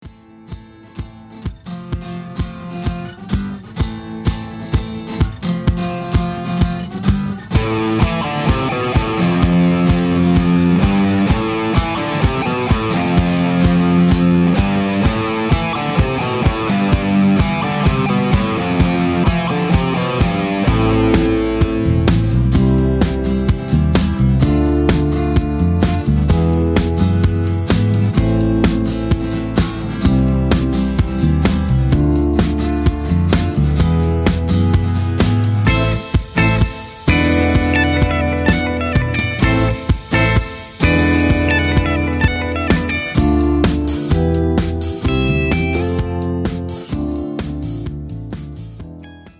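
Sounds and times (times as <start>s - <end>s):
backing music without leads or background vocals: 0.0s - 49.3s.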